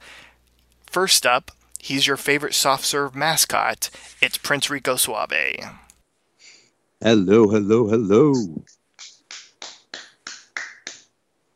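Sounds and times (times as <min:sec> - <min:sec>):
speech: 0:01.0 - 0:05.8, 0:07.0 - 0:08.8
slow hand clapping: 0:09.0 - 0:11.1.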